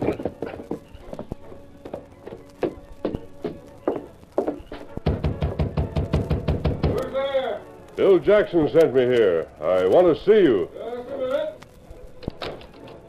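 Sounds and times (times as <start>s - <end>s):
hoofbeats of the Lone Ranger's horse Silver galloping: 0.0s - 7.1s
speech: 8.0s - 10.8s.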